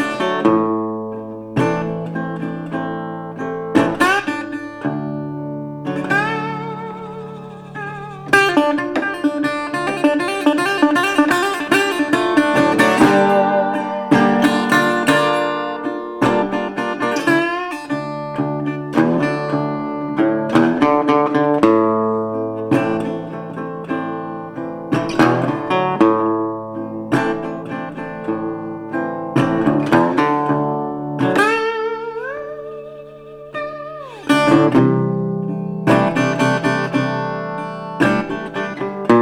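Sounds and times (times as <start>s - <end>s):
instrumental music: 0.0s - 39.2s.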